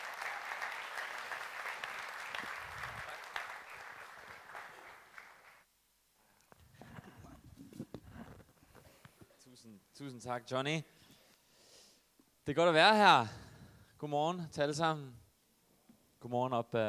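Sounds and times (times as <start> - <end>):
scattered claps: 0.0 - 5.6
church congregation at Citykirken in Denmark applauding a guest speaker: 0.0 - 5.7
speech: 9.6 - 11.0, 12.5 - 13.4, 14.0 - 15.2, 16.2 - 16.8.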